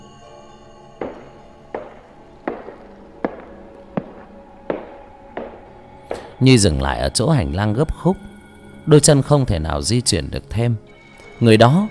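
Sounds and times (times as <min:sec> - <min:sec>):
approaching footsteps: 0:01.0 - 0:06.4
speech: 0:06.4 - 0:11.9.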